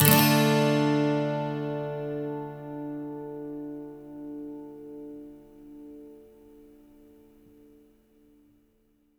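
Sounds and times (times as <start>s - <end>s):
12-string acoustic guitar minor loops: 0.0s - 7.8s.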